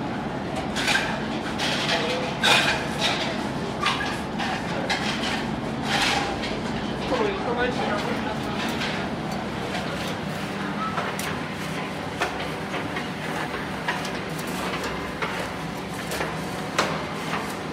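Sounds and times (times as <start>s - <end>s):
medieval bakery ambience: 0.6s - 17.7s.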